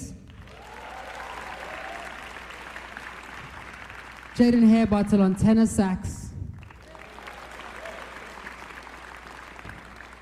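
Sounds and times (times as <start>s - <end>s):
audience applause: 0.3s - 4.7s, 6.6s - 10.1s
speech: 4.4s - 6.2s.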